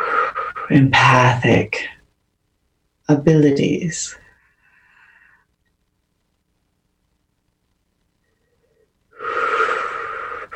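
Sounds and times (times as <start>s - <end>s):
speech: 0.7s - 2.0s, 3.1s - 4.2s
deep inhale: 4.4s - 5.5s, 8.4s - 10.5s.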